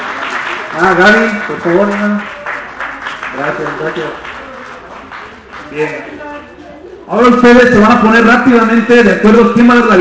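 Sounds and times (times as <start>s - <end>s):
audience applause: 0.0s - 6.0s
speech: 0.8s - 2.4s, 3.4s - 4.3s, 5.7s - 6.3s, 7.1s - 10.0s.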